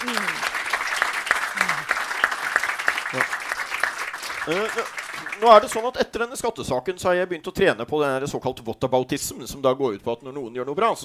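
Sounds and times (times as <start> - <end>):
audience applause: 0.0 - 6.0
speech: 4.5 - 11.0.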